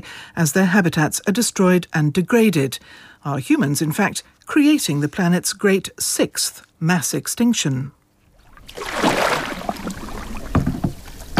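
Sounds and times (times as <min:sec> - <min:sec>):
speech: 0:00.0 - 0:08.0
river flowing through the countryside of Assam: 0:08.5 - 0:11.3.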